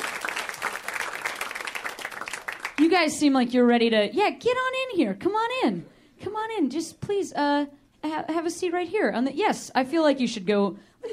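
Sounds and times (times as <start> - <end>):
audience applause: 0.0 - 2.8
speech: 2.8 - 11.1.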